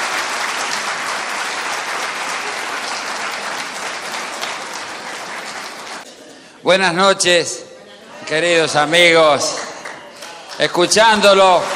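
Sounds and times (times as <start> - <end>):
audience applause: 0.0 - 6.0, 9.4 - 11.7
speech: 6.6 - 9.6, 10.6 - 11.7.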